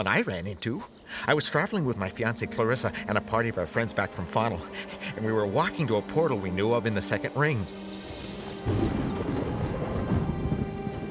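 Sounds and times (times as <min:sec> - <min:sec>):
speech: 0:00.0 - 0:07.8
rain: 0:02.7 - 0:03.3, 0:04.2 - 0:11.0
thunder: 0:08.0 - 0:11.0.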